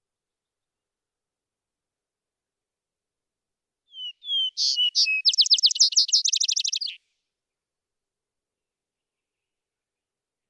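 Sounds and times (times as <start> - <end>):
vesper sparrow singing: 3.9 - 7.0.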